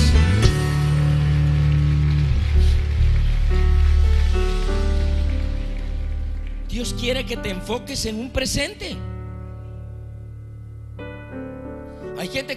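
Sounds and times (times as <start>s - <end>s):
audience applause: 0.4s - 7.3s
speech: 6.8s - 9.1s, 12.3s - 12.5s.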